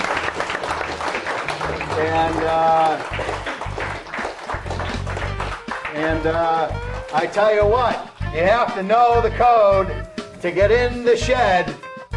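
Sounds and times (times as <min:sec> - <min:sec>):
audience applause: 0:00.0 - 0:07.2
speech: 0:02.0 - 0:03.5, 0:06.0 - 0:11.8.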